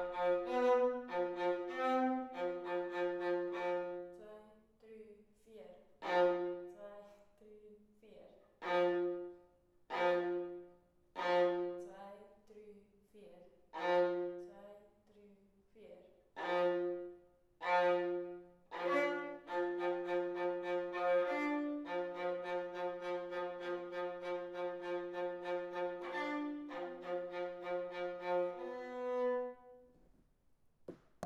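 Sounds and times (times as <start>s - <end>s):
viola: 0.0s - 4.2s, 6.0s - 6.8s, 8.6s - 11.9s, 13.7s - 14.5s, 16.4s - 30.0s.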